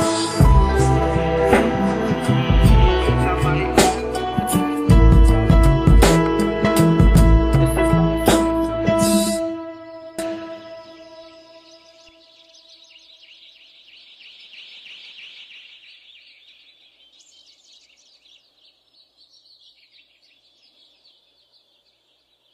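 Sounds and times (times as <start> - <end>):
instrumental music: 0.0 - 12.5.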